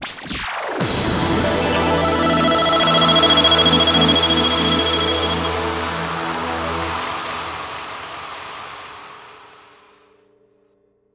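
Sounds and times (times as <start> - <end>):
battle opening jingle: 1.0 - 8.8.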